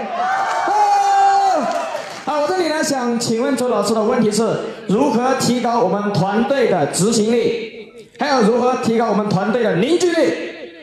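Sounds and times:
audience applause and cheering: 0:00.0 - 0:02.7
speech: 0:02.8 - 0:10.5.

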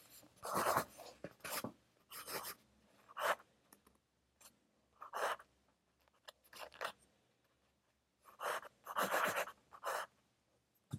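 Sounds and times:
pencil writing while studying: 0:00.0 - 0:03.5, 0:05.0 - 0:05.5, 0:08.2 - 0:10.2.

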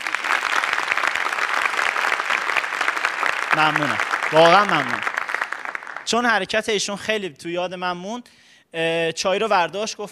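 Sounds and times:
audience applause for a guest: 0:00.0 - 0:06.3
speech: 0:03.6 - 0:05.1, 0:06.1 - 0:10.1.

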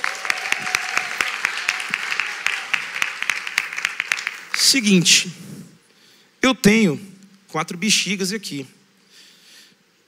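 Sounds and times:
audience applause: 0:00.0 - 0:04.9
speech: 0:04.7 - 0:05.4, 0:06.4 - 0:08.8.

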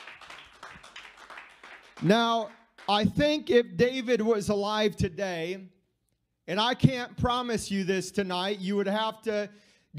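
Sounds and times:
audience clapping in praise: 0:00.0 - 0:03.2
speech: 0:02.0 - 0:05.8, 0:06.5 - 0:09.9.

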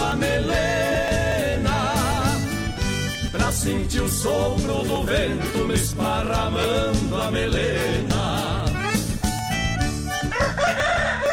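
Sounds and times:
music with a regular low beat: 0:00.0 - 0:11.3
speech: 0:03.6 - 0:08.8
rooster crowing: 0:10.2 - 0:11.3.

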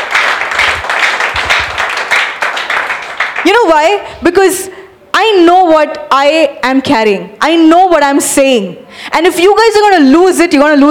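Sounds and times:
audience clapping hands: 0:00.0 - 0:03.6
speech: 0:03.4 - 0:10.8.

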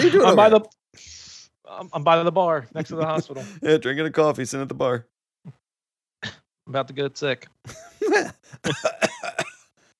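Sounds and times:
laughter: 0:00.0 - 0:00.6, 0:02.8 - 0:03.8, 0:07.7 - 0:09.4
speech: 0:00.0 - 0:05.6, 0:06.2 - 0:09.4
cough: 0:06.2 - 0:06.5, 0:08.6 - 0:09.7.

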